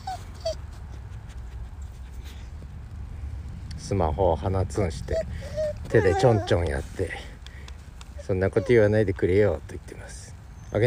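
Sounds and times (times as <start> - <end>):
dog whimpering: 0.0 - 1.0, 5.0 - 7.3, 8.1 - 9.4
low hum: 0.0 - 10.8
speech: 3.9 - 7.3, 8.3 - 10.8.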